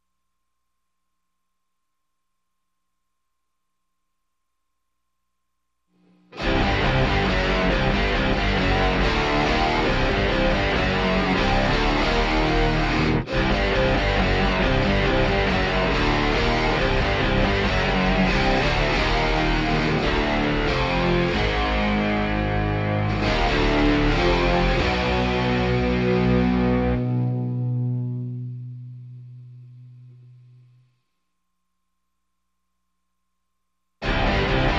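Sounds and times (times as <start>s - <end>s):
guitars playing: 6.4s - 30.6s, 34.0s - 34.7s.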